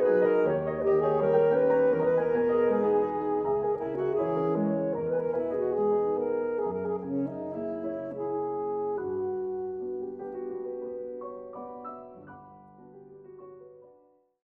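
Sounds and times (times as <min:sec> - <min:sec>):
saxophone: 0:00.0 - 0:10.3.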